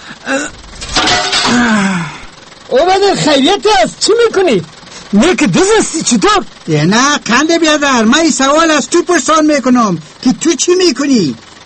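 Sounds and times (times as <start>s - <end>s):
window glass being smashed: 0.7s - 1.8s
speech: 2.7s - 11.6s.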